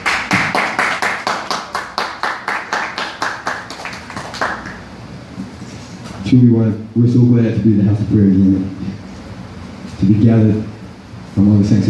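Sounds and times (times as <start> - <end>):
audience clapping hands: 0.0 - 4.9
speech: 6.3 - 9.0, 10.0 - 10.8, 11.4 - 11.8.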